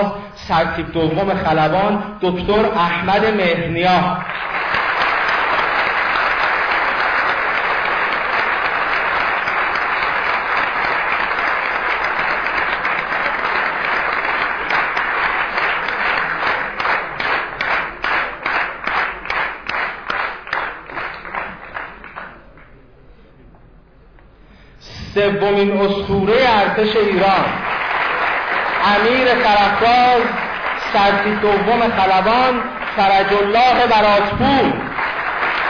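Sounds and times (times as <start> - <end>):
speech: 0.0 - 4.6, 25.2 - 27.6, 28.8 - 34.8
large audience applause: 4.2 - 22.8, 26.3 - 35.6.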